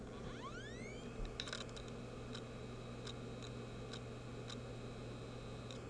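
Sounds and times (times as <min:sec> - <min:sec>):
laptop noise: 0:00.0 - 0:05.8.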